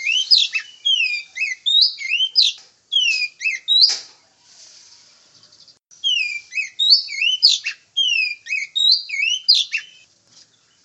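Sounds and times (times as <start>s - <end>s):
Oriental magpie-robin whistled song with buzzy notes: 0.0s - 4.0s, 5.5s - 10.1s.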